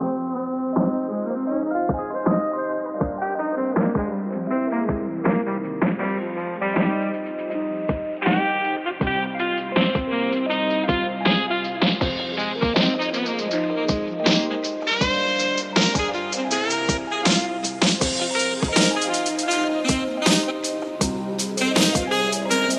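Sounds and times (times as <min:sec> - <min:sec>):
lo-fi music: 0:00.0 - 0:22.7.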